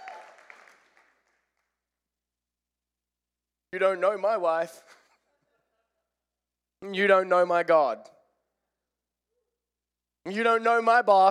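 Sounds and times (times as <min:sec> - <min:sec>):
audience cheering with a high whoop: 0:00.0 - 0:01.0
audience applause: 0:00.0 - 0:01.4
speech: 0:03.8 - 0:05.0, 0:06.8 - 0:08.1, 0:10.2 - 0:11.2.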